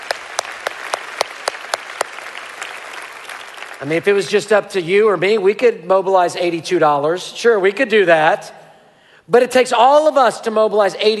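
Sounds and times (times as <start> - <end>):
audience applauding: 0.0 - 4.1
speech: 3.8 - 8.6, 9.3 - 11.1.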